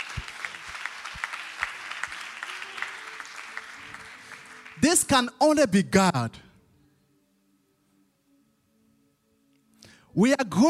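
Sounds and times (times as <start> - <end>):
crowd applause: 0.0 - 5.1
speech: 4.8 - 6.5, 10.2 - 10.6.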